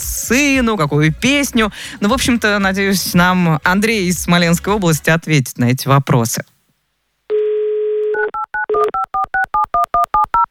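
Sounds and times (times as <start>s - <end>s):
speech: 0.3s - 6.5s
steady telephone dial tone: 7.3s - 10.4s.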